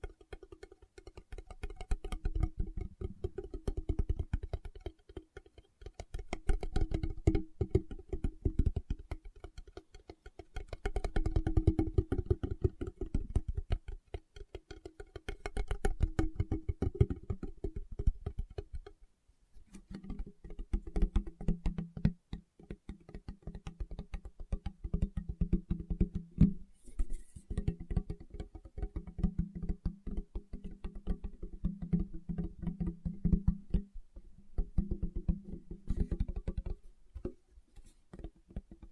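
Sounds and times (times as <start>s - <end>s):
fingertip tapping: 0.0s - 38.9s.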